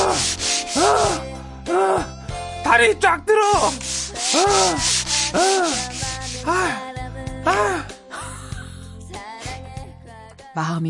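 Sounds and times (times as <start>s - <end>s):
skin scrubbed hard with an exfoliating bath towel: 0.0s - 1.2s, 3.6s - 6.7s
speech: 2.8s - 6.8s, 7.4s - 7.9s, 10.6s - 10.8s.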